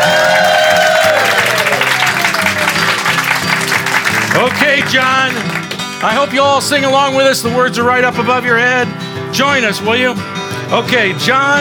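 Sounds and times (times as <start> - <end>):
audience applause: 0.0 - 6.3
speech: 4.4 - 11.6.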